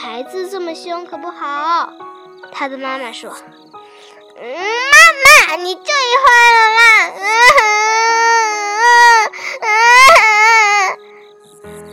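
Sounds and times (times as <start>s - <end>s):
speech: 0.1s - 10.2s
child crying in wailing sobs: 4.4s - 11.0s.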